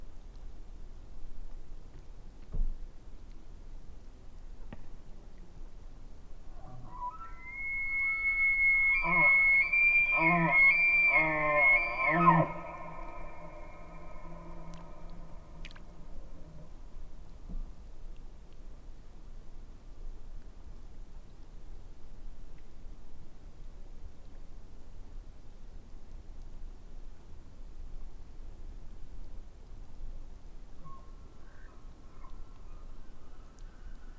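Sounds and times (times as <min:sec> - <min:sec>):
elk bugling: 0:06.5 - 0:16.6.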